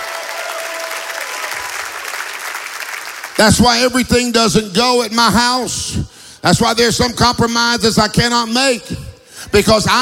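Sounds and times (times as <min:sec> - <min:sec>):
church congregation clapping and cheering in praise: 0:00.0 - 0:04.9
speech: 0:03.4 - 0:10.0.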